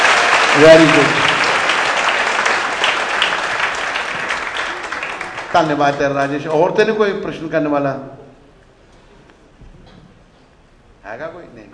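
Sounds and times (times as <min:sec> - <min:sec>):
audience applause at a religious discourse gathering: 0:00.0 - 0:07.0
speech: 0:00.6 - 0:01.2, 0:05.5 - 0:08.2, 0:11.1 - 0:11.7.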